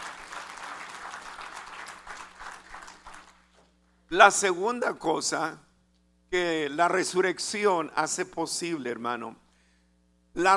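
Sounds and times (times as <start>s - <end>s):
audience applause: 0.0s - 3.4s
speech: 4.1s - 5.7s, 6.3s - 9.4s, 10.4s - 10.5s.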